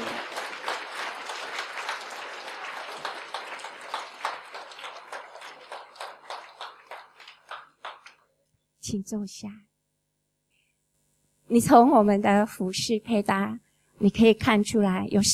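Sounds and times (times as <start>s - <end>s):
audience applause: 0.0s - 8.2s
speech: 8.9s - 9.7s, 11.5s - 15.3s.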